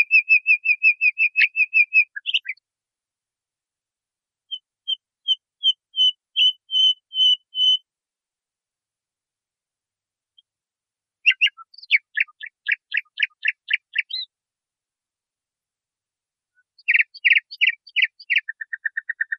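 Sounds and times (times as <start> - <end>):
nightingale song on a training recording for cage birds: 0.0 - 2.6, 4.5 - 7.9, 11.2 - 14.3, 16.6 - 19.3.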